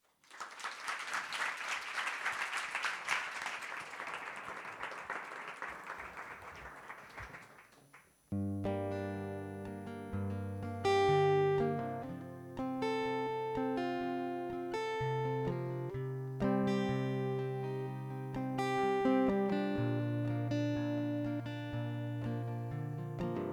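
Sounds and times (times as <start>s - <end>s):
audience applause: 0.0s - 8.1s
sustained music with held tonal chords: 8.4s - 23.5s.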